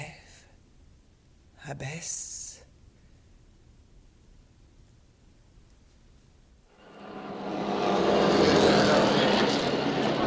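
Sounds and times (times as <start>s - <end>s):
speech: 1.7s - 2.3s
Ferrari racing car engines roaring on a race track: 6.8s - 10.2s.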